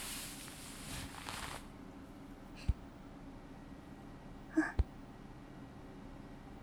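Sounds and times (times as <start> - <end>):
gentle patting: 0.0 - 1.7
person singing a lullaby: 4.5 - 4.9.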